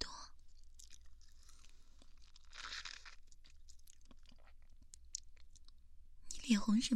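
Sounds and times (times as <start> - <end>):
chewing a strawberry: 0.4 - 5.8.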